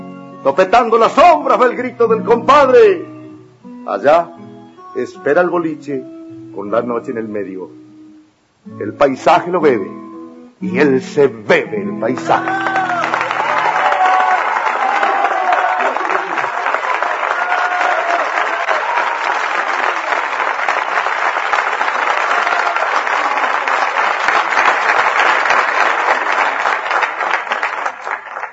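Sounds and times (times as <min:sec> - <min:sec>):
speech: 0:00.4 - 0:03.1, 0:03.8 - 0:04.4, 0:05.0 - 0:07.8, 0:08.6 - 0:10.0, 0:10.6 - 0:12.8
audience applause after poem: 0:12.2 - 0:28.5.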